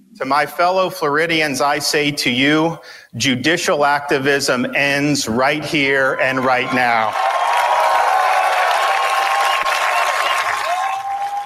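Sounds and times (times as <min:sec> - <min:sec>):
speech: 0:00.2 - 0:07.4
crowd applause at a political speech: 0:06.3 - 0:11.4.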